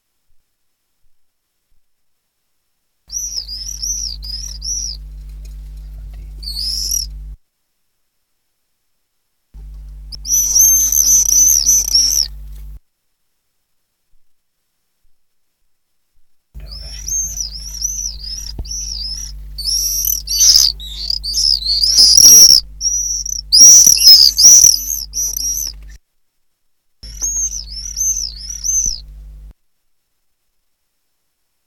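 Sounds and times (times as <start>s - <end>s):
common swift screams: 3.1s - 7.2s, 10.1s - 12.4s, 16.6s - 26.0s, 27.0s - 29.1s
steady low hum: 3.1s - 7.4s, 9.6s - 12.8s, 16.6s - 26.0s, 27.0s - 29.5s.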